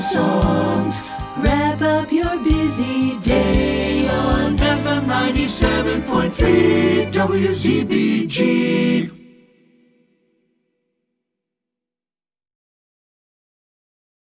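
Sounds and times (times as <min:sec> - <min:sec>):
jingle: 0:00.0 - 0:08.2.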